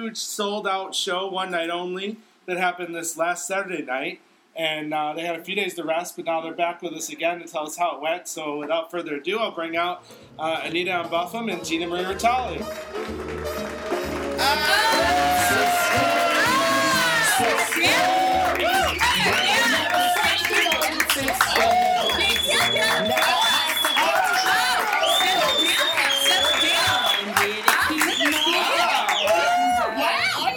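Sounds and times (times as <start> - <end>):
speech: 0.0 - 13.7, 14.4 - 15.2
audience applause: 12.6 - 30.5.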